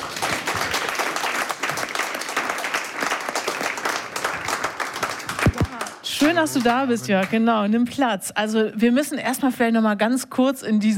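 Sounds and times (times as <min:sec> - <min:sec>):
audience applause: 0:00.0 - 0:07.5
speech: 0:06.2 - 0:10.9.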